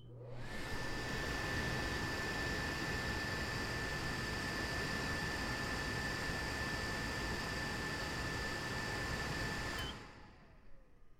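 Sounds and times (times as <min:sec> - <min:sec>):
microwave fan recorded up close: 0:00.0 - 0:11.1.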